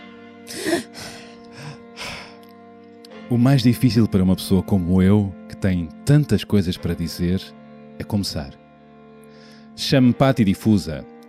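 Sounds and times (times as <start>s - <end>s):
deep breath taken before reading aloud: 0.4s - 2.8s, 9.2s - 9.8s
speech: 3.3s - 8.6s, 9.8s - 11.2s.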